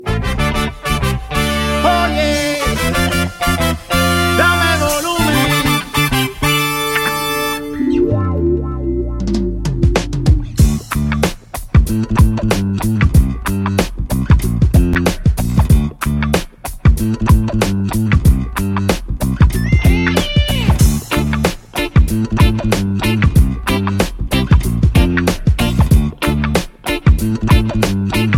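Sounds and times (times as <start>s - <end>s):
funk music: 0.0s - 28.3s.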